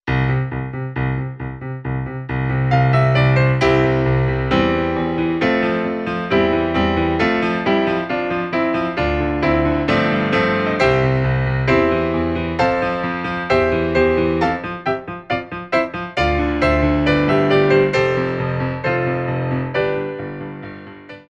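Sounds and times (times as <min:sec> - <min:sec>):
modern Christmas melodies: 0:00.2 - 0:21.2.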